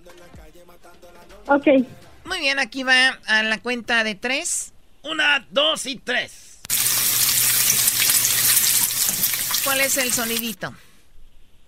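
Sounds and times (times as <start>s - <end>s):
speech: 0.1s - 6.5s, 9.6s - 10.8s
pork carnitas frying in a pan: 6.7s - 10.6s.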